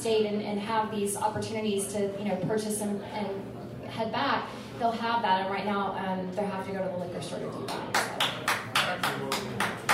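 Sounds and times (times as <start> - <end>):
speech: 0.0 - 9.9
marshals clapping: 7.7 - 9.9.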